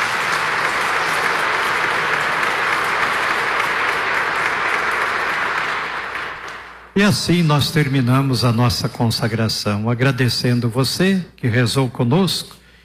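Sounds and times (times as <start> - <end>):
big round of applause: 0.0 - 7.0
speech: 7.0 - 12.6.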